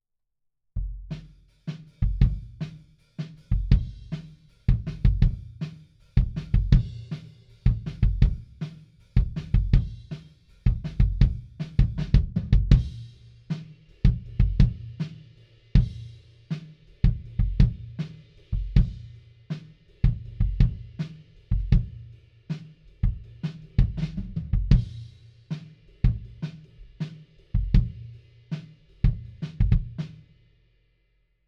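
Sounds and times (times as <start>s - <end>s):
kick drum: 2.0s - 2.6s, 3.5s - 7.1s, 7.7s - 8.6s, 9.2s - 13.0s, 14.0s - 15.0s, 17.0s - 18.0s, 18.6s - 19.0s, 20.0s - 22.1s, 23.0s - 25.0s, 26.0s - 26.4s, 27.6s - 28.1s, 29.0s - 30.0s.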